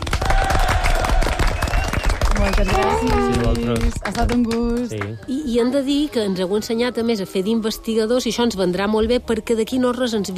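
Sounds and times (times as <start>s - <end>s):
applause: 0.0s - 5.3s
speech: 2.4s - 10.3s.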